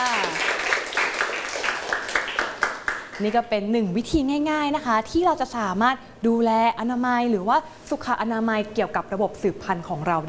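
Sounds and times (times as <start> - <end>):
class of students clapping: 0.0 - 3.4
speech: 3.2 - 10.2.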